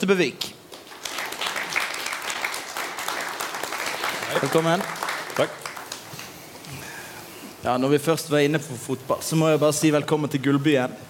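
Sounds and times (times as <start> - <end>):
speech: 0.0 - 0.5, 4.3 - 5.6, 7.6 - 11.0
audience applause welcoming a speaker: 0.7 - 6.4.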